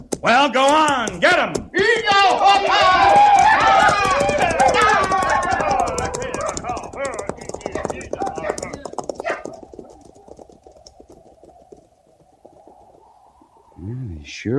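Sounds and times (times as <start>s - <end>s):
buffalo herd stampeding toward the river: 0.0s - 13.6s
speech: 0.2s - 4.6s.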